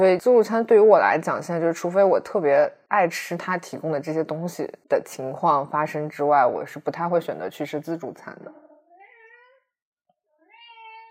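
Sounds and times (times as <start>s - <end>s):
speech: 0.0s - 8.6s
cat meowing: 8.6s - 9.6s, 10.4s - 11.0s.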